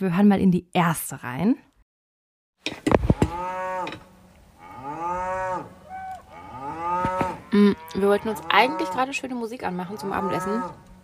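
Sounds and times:
speech: 0.0s - 1.7s, 7.5s - 10.9s
cattle mooing outside a camper van: 3.2s - 10.8s.

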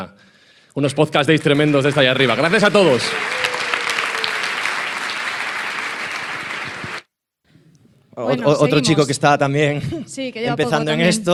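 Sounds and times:
speech: 0.0s - 3.4s, 8.2s - 11.3s
applause: 0.9s - 7.1s.

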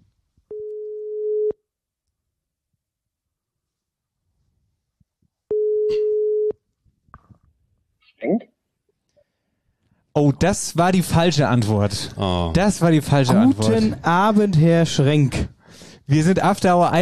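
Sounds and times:
telephone ringback tone: 5.5s - 6.5s
speech: 10.2s - 15.5s, 16.1s - 17.0s.

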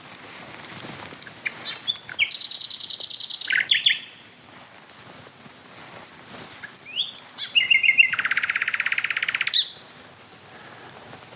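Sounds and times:
Common Nightingale song trill: 1.2s - 4.3s, 6.6s - 9.8s.

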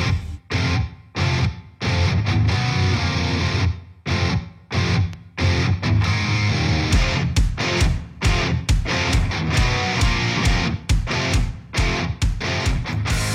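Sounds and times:
rock track with distorted electric guitars and pounding drums: 0.0s - 13.3s.

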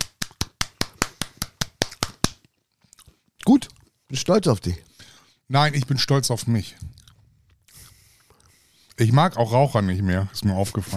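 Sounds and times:
self-applause hand clapping: 0.0s - 2.4s
speech: 3.4s - 4.9s, 5.5s - 6.9s, 9.0s - 10.9s.

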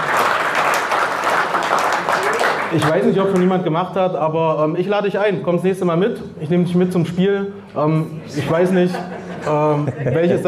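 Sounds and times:
audience applause: 0.0s - 3.4s
speech: 2.7s - 10.4s
laughter: 8.2s - 10.4s.

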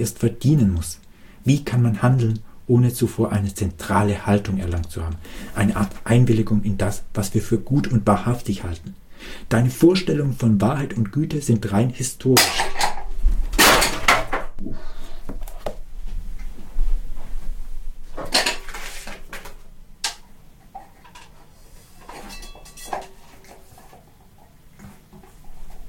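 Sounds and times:
speech: 0.0s - 12.6s
lamp toppling over with a loud clattering crash: 12.4s - 14.5s.

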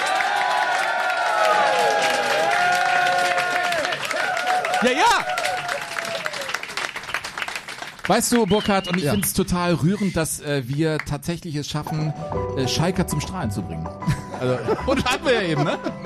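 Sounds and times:
live audience cheering: 0.0s - 9.7s
live audience applauding: 0.0s - 11.2s
speech: 4.8s - 5.4s, 8.1s - 16.0s
laughter: 9.1s - 10.4s, 14.0s - 16.0s.

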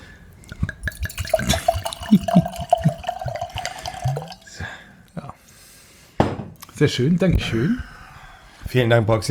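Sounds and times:
red wine dripping and trickling into a glass: 0.3s - 4.8s
speech: 6.8s - 7.9s, 8.7s - 9.2s.

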